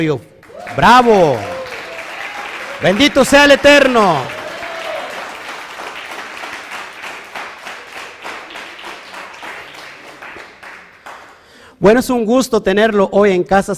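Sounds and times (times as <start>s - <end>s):
speech: 0.0s - 1.5s, 2.8s - 4.4s, 11.8s - 13.7s
audience applause: 0.4s - 11.6s.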